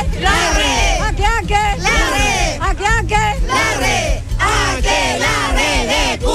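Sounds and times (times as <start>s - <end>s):
crowd shouting: 0.2s - 1.0s, 1.8s - 2.6s, 3.5s - 6.3s.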